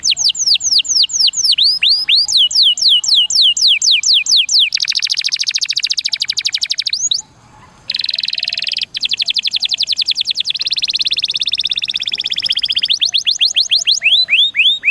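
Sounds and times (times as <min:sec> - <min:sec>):
Atlantic canary singing: 0:00.0 - 0:14.8.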